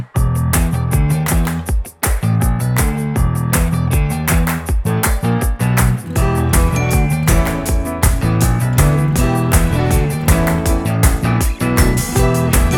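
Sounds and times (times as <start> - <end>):
main theme music: 0.2 - 12.7.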